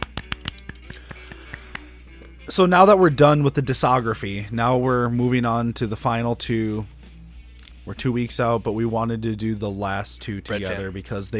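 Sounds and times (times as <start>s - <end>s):
golf clap: 0.0s - 2.0s
speech: 2.5s - 7.0s, 7.9s - 11.3s.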